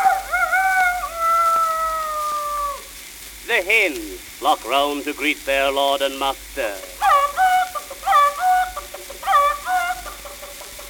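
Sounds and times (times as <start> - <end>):
Shanghai rooster crowing at dawn: 0.0 - 2.9, 7.0 - 10.8
speech: 3.6 - 7.2.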